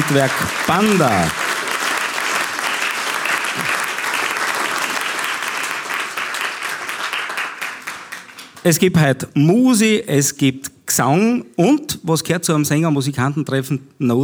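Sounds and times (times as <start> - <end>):
audience applause: 0.0 - 8.8
speech: 0.1 - 1.4, 8.6 - 14.2.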